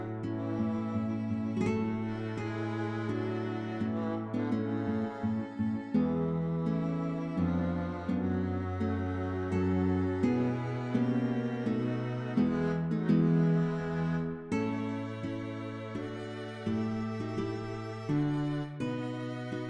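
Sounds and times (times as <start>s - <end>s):
bagatelles with string quartet: 0.0s - 19.6s.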